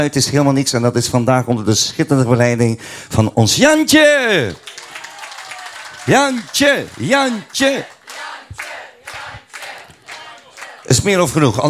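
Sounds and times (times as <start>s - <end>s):
speech: 0.0s - 4.8s, 6.1s - 7.9s, 10.9s - 11.6s
audience applause: 4.5s - 11.5s.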